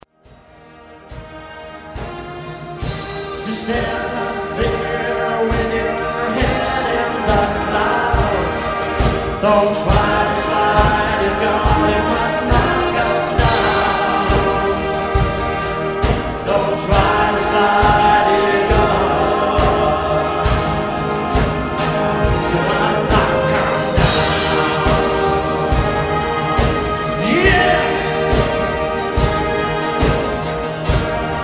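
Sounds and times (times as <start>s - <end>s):
hymn: 2.0s - 31.4s.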